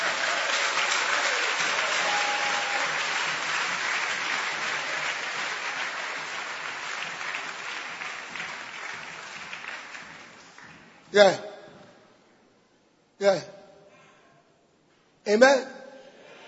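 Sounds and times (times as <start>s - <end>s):
large crowd applauding: 0.0s - 11.0s
speech: 11.1s - 11.5s, 13.2s - 13.6s, 15.3s - 15.7s.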